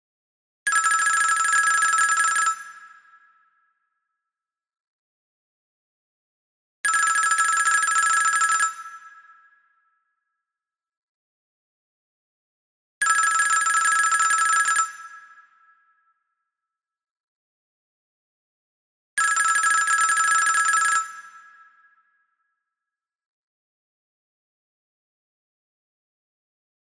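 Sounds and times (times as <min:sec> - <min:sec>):
American telephone: 0:00.7 - 0:02.5, 0:06.9 - 0:08.8, 0:13.0 - 0:14.9, 0:19.2 - 0:21.2.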